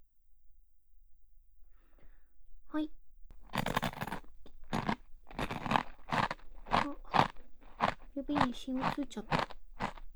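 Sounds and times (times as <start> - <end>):
speech: 2.8 - 3.0, 8.3 - 9.6
food being bitten and chewed: 3.3 - 10.1.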